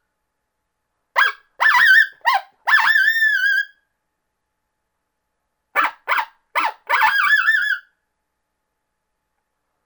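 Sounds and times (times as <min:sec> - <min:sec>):
coyote challenge barks and yowls: 0:01.2 - 0:03.8, 0:05.8 - 0:07.9.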